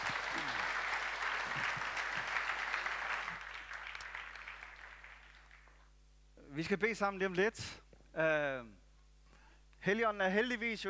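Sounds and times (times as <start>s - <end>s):
audience applause at a church gathering: 0.0s - 5.8s
speech: 6.6s - 8.8s, 9.8s - 10.8s.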